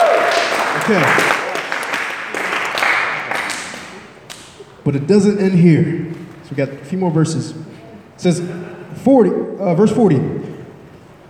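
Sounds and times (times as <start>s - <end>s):
crowd clapping: 0.0s - 4.7s
speech: 0.9s - 1.4s, 4.8s - 10.5s.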